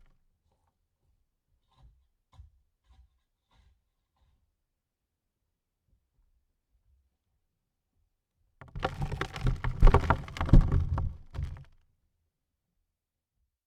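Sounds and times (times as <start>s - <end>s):
dirt on coffin lid: 8.7s - 11.7s.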